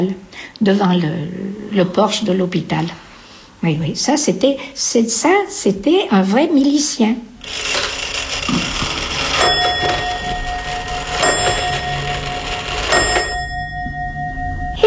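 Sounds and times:
speech: 0.0s - 3.0s, 3.6s - 8.8s
old Swiss pendulum clock chiming: 7.4s - 14.8s.

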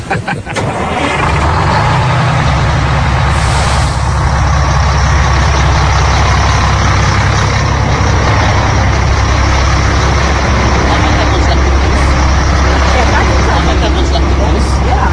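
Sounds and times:
laughter: 0.0s - 1.1s, 10.1s - 15.1s
large tour bus engine idling: 0.0s - 15.1s
air brake hissing: 3.3s - 4.2s.

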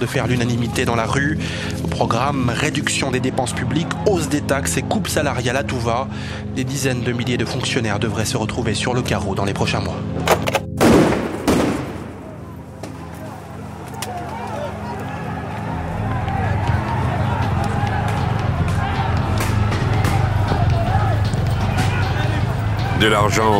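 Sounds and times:
speech: 0.0s - 10.6s, 23.0s - 23.5s
stun grenade bangs: 10.8s - 13.0s
riot crowd roaring in an Athens street protest: 12.1s - 23.5s.

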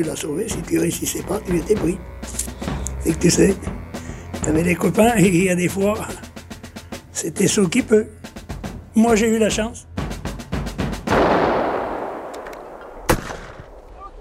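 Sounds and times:
speech: 0.0s - 3.8s, 4.5s - 6.2s, 7.2s - 8.2s, 9.0s - 9.8s
gunfire at the front: 11.1s - 14.0s.

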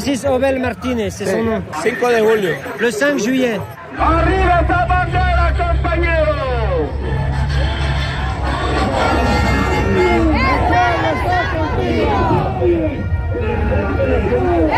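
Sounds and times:
speech: 0.0s - 6.3s
crowd chanting: 6.9s - 14.7s.

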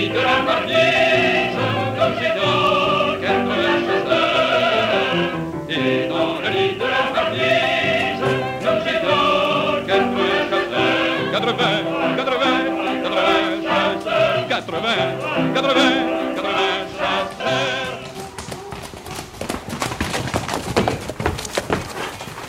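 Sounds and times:
speech: 0.0s - 1.0s, 14.6s - 16.3s
people singing together: 0.0s - 18.3s
horse hooves thumping leaving its stall: 12.4s - 22.4s.

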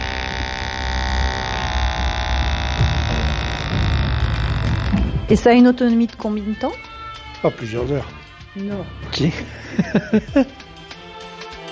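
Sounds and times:
small handheld toy's motors humming: 0.0s - 7.4s
speech: 5.3s - 10.7s
laughter: 9.3s - 10.7s.

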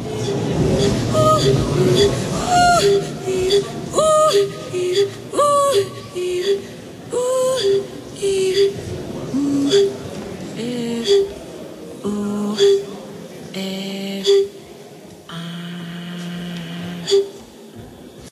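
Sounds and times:
chanting: 0.0s - 18.2s.

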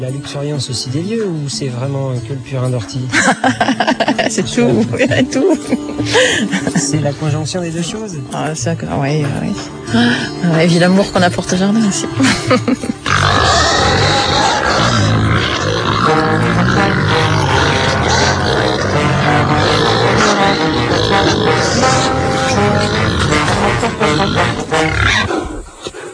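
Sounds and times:
speech: 0.0s - 12.9s
laughter: 3.1s - 7.0s, 12.0s - 13.2s
Gascon black pigs grunting, snorting and squealing: 13.0s - 26.1s.

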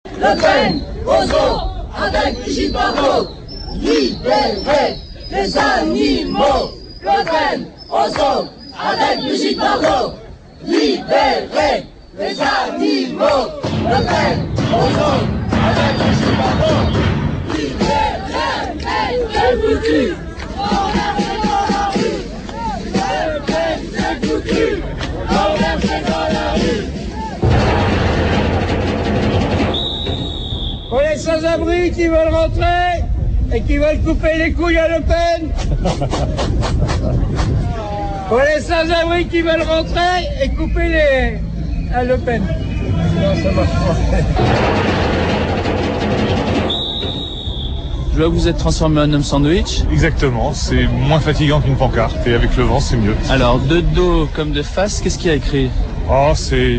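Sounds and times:
anti-FN protest crowd ambience: 0.0s - 56.7s
laughter: 35.4s - 38.3s, 43.1s - 44.7s.

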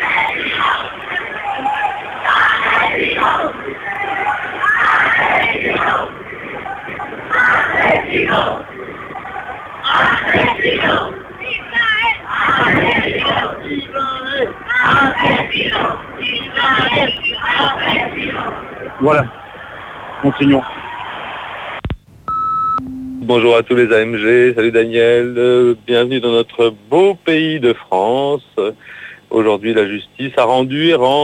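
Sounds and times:
protest crowd in Granada, Spain, shouting against the Gaza massacres: 0.0s - 21.5s
speech: 20.4s - 20.7s, 23.3s - 31.2s.

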